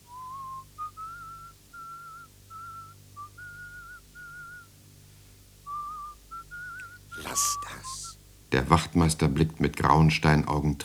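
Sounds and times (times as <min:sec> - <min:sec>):
soft whistling of a slow melody: 0:00.0 - 0:04.9, 0:05.6 - 0:08.2
speech: 0:07.4 - 0:10.8.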